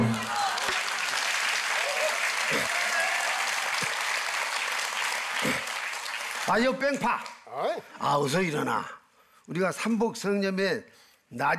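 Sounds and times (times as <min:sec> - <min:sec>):
audience clapping: 0:00.0 - 0:07.5
speech: 0:06.5 - 0:11.5.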